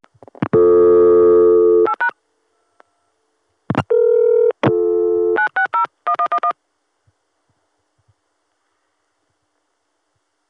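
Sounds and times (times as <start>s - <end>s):
long steady telephone tone on a line through a Crossbar 5 exchange: 0.6s - 2.1s, 3.9s - 6.5s.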